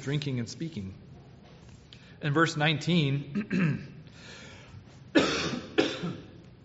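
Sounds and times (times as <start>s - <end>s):
speech: 0.0s - 1.0s, 2.2s - 4.4s
person coughing after a drink went down the wrong way: 3.3s - 4.0s, 5.1s - 6.4s.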